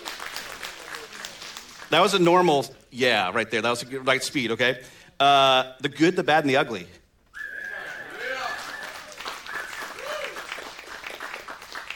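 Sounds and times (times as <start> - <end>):
audience clapping: 0.0 - 2.6, 7.8 - 11.9
speech: 1.9 - 7.0.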